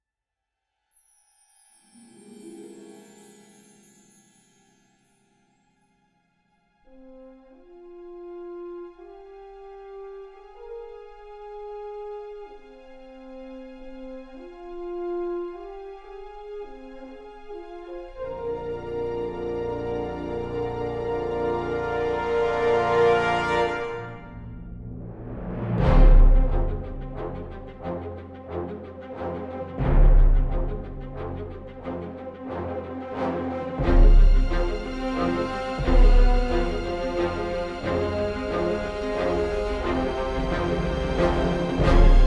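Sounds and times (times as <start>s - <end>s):
trailer music: 18.2s - 42.2s.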